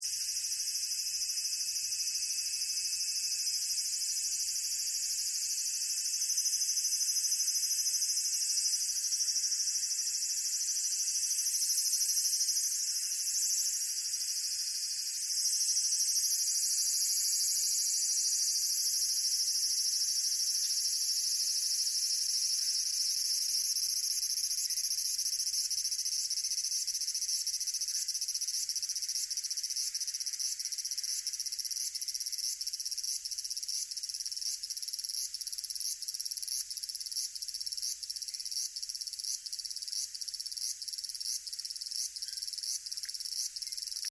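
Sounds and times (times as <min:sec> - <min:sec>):
Japanese cicadas in Tokyo summer: 0:00.0 - 0:44.1.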